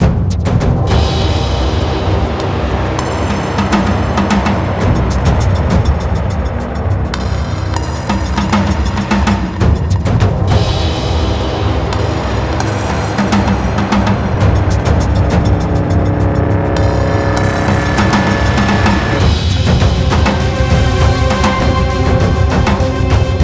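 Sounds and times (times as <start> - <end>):
choral music: 0.0 - 23.4.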